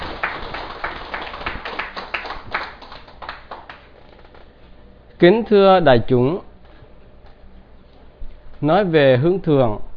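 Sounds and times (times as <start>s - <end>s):
audience applause at a Buddhist dharma talk: 0.0s - 4.4s
speech: 5.2s - 6.5s, 8.6s - 9.9s.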